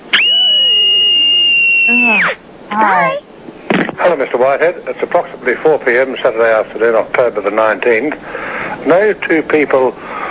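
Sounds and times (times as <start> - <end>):
eight-year-old girl screaming: 0.1 - 3.3
speech: 2.7 - 3.2, 4.1 - 10.1.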